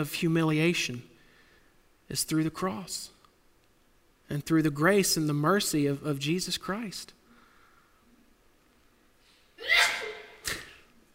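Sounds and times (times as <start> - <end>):
speech: 0.0 - 1.1, 2.1 - 3.2, 4.3 - 7.2
sneeze: 9.6 - 10.9.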